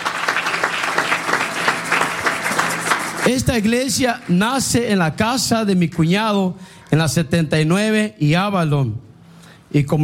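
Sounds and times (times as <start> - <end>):
audience applause: 0.0 - 4.8
speech: 3.3 - 9.1, 9.7 - 10.0.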